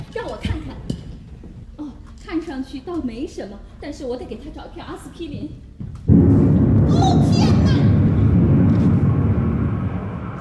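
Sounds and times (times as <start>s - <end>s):
speech: 2.5s - 6.3s
bomb explosion: 6.1s - 10.3s.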